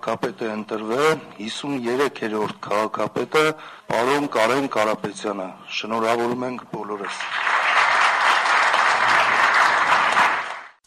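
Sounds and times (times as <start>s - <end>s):
speech: 0.0s - 7.5s
standing ovation applause in the Yerevan city council after a new mayor's election: 6.9s - 10.8s.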